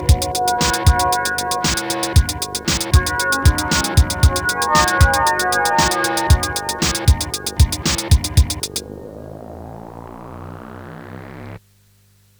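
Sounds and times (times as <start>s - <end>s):
drum break: 0.0s - 8.8s.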